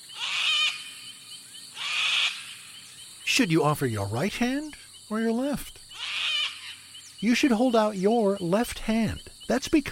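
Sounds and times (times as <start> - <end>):
sulfur-crested cockatoo screeching: 0.1 - 0.9, 1.8 - 2.5, 5.9 - 6.8
speech: 3.4 - 5.8, 7.2 - 9.8.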